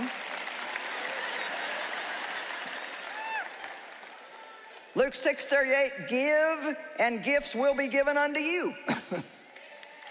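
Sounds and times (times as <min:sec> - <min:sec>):
roomful of people applauding: 0:00.0 - 0:05.0, 0:08.9 - 0:10.0
speech: 0:05.0 - 0:09.4.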